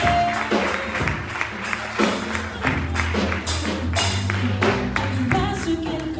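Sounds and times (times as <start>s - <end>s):
church congregation clapping for a member's birthday: 0.0s - 6.1s.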